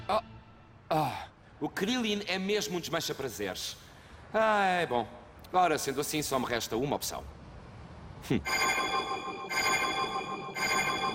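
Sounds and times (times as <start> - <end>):
speech: 0.1 - 0.3, 1.6 - 7.4, 8.2 - 9.8
short swooping tone: 8.5 - 11.1
telephone ringing in an animated series: 8.5 - 11.1.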